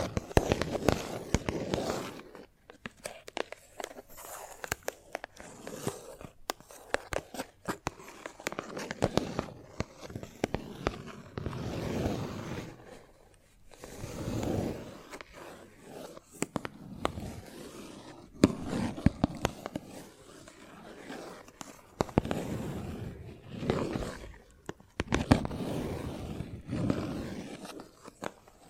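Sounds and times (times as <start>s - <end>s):
chalk being tapped, scratched and carved: 0.0s - 28.6s.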